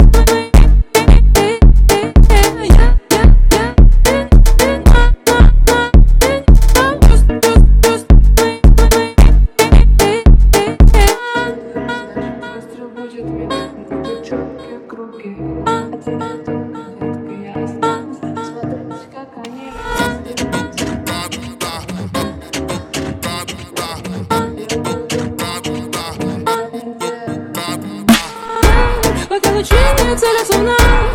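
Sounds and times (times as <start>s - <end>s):
ultra slowed phonk music: 0.0s - 12.0s, 19.8s - 26.6s, 27.6s - 31.1s.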